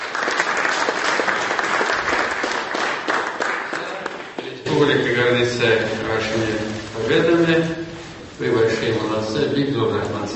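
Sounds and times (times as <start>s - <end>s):
audience applause: 0.0s - 4.6s
speech: 4.8s - 7.8s, 8.4s - 10.3s.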